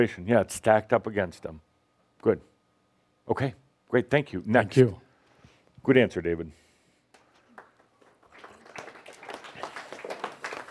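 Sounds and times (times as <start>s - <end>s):
speech: 0.0s - 2.5s, 3.3s - 5.0s, 5.8s - 6.6s
quiet polite golf-style applause: 7.1s - 10.6s.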